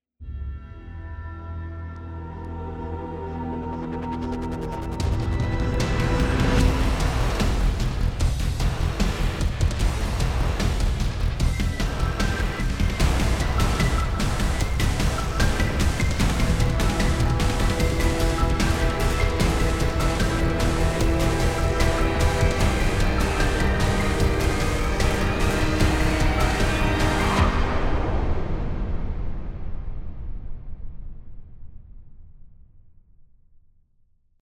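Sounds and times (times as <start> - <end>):
cinematic music: 0.2 - 29.5.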